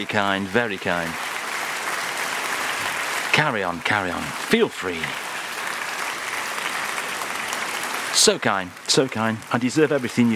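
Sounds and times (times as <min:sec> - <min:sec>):
speech: 0:00.0 - 0:01.3, 0:03.4 - 0:05.2, 0:08.2 - 0:10.3
audience clapping: 0:00.0 - 0:10.3.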